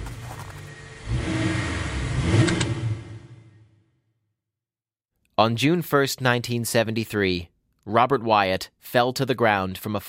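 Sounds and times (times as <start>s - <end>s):
car engine revving and accelerating: 0.2s - 3.6s
speech: 5.4s - 10.0s.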